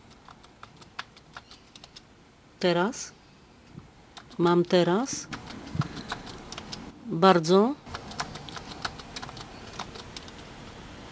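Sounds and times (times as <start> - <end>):
typing on a computer keyboard into a text editor: 0.0 - 2.1, 4.2 - 4.5, 5.1 - 6.9, 7.8 - 10.5
speech: 2.6 - 3.2, 4.4 - 5.4, 7.1 - 7.8.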